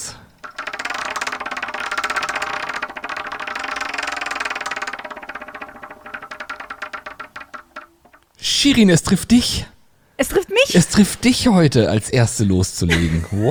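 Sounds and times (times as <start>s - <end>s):
spinning prize wheel clicking: 0.0s - 9.4s
speech: 8.4s - 13.4s.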